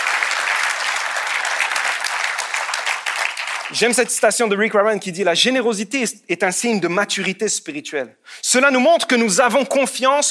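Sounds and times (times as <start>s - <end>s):
audience applause: 0.0s - 4.0s
speech: 3.7s - 10.2s.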